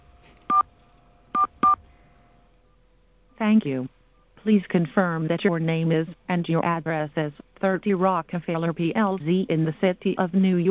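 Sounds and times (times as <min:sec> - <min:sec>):
faint hum: 0:00.0 - 0:10.6
telephone keypad tones dialing a number: 0:01.4 - 0:01.8
speech: 0:03.4 - 0:10.6.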